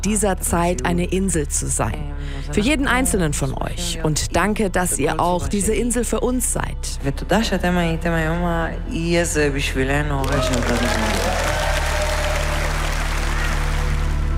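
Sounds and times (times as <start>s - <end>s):
speech: 0.0s - 11.6s
audience applause: 10.2s - 14.3s.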